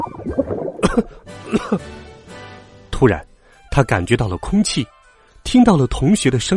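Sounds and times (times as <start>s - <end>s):
person coughing after choking on water: 0.8s - 1.9s
speech: 1.0s - 2.0s, 3.0s - 6.5s.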